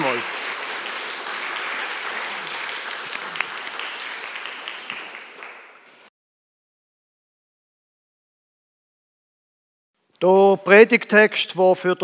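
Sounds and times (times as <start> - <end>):
audience applause: 0.0 - 6.1
speech: 10.2 - 12.0.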